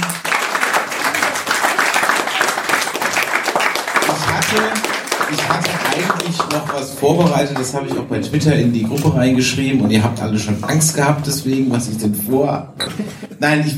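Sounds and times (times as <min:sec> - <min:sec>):
applause: 0:00.0 - 0:08.0
speech: 0:04.5 - 0:13.7.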